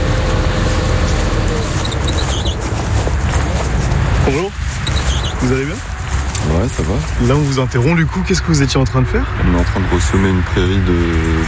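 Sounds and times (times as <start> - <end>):
tractor engine running in a field: 0.0 - 8.4
speech: 7.0 - 11.4.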